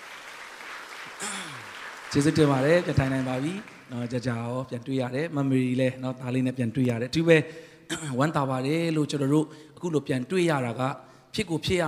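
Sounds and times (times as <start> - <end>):
church congregation applauding to welcome back a returning member: 0.0 - 4.6
speech: 2.1 - 11.8.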